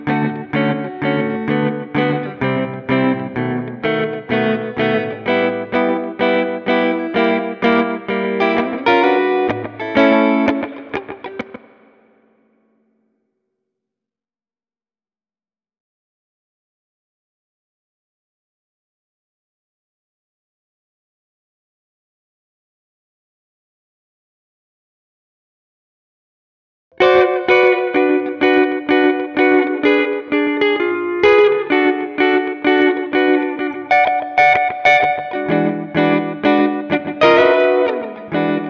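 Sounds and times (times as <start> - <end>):
rhythm guitar: 0.0 - 12.1, 27.0 - 38.6.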